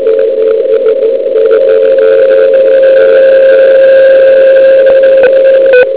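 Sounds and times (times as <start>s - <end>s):
beacon signal: 0.1s - 5.9s.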